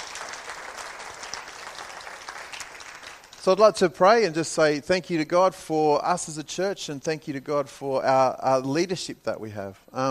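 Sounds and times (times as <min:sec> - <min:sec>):
round of applause: 0:00.0 - 0:03.6
speech: 0:03.4 - 0:10.0.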